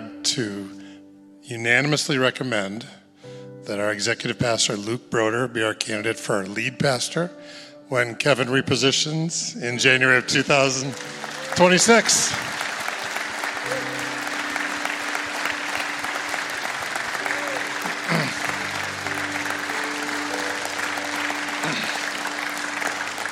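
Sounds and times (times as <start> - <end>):
speech: 0.3 - 0.8, 1.4 - 3.0, 3.6 - 12.6
sustained applause from a large audience: 10.1 - 23.3.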